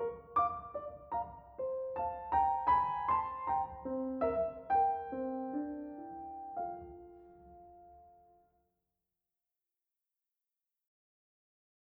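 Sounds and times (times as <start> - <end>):
piano adagio: 0.0 - 8.6.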